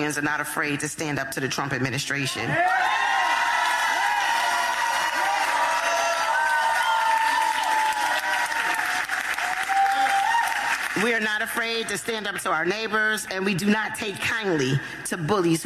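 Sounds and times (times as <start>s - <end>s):
speech: 0.1s - 3.1s, 11.0s - 15.6s
cheering and scattered whoops: 2.6s - 10.9s
crowd applause: 2.9s - 11.1s.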